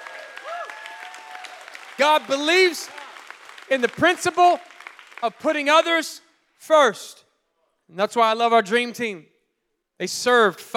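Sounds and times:
audience clapping: 0.0s - 6.1s
speech: 2.0s - 3.0s, 3.7s - 7.2s, 7.9s - 9.3s, 10.0s - 10.7s.

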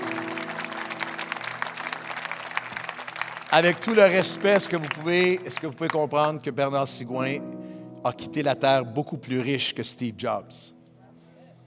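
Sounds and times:
audience applauding in church: 0.0s - 6.2s
speech: 3.6s - 10.8s.

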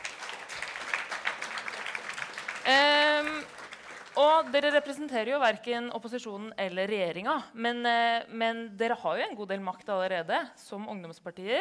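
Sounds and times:
audience applause: 0.0s - 4.9s
speech: 2.7s - 3.4s, 4.2s - 11.5s.

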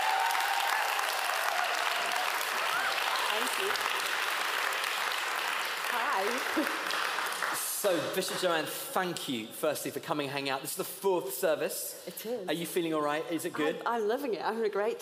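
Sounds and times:
applause welcoming the new Bishop of Stepney at a Hackney Church Sunday service: 0.0s - 8.7s
speech: 3.4s - 4.0s, 6.2s - 7.0s, 7.8s - 15.0s.

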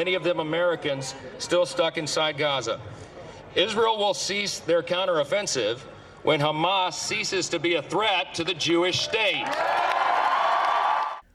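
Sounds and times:
speech: 0.0s - 9.8s
large crowd shouting and cheering: 8.9s - 11.2s.

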